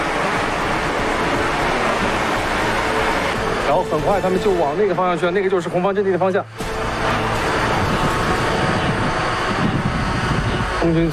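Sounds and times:
dense drone swarm buzzing in flight: 0.0s - 11.1s
speech: 3.7s - 6.8s, 10.8s - 11.1s.

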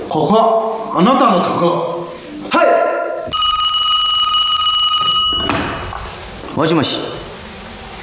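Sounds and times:
speech: 0.1s - 1.9s, 6.6s - 7.1s
telephone ringing: 3.3s - 5.9s.

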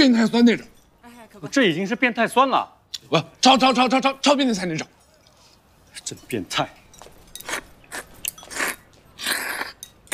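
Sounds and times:
speech: 0.0s - 0.8s, 1.4s - 5.0s, 6.0s - 6.8s
person eating noodles, chewing and biting: 7.4s - 10.1s.

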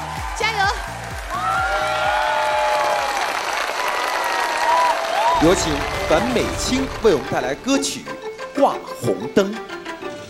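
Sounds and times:
audience applause: 0.0s - 8.1s
speech: 5.4s - 9.8s.

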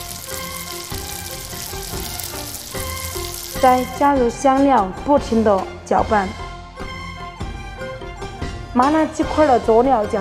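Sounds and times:
hot rapeseed oil from a wok sizzling on ground chili: 0.0s - 4.2s
speech: 3.6s - 6.4s, 8.8s - 10.1s.

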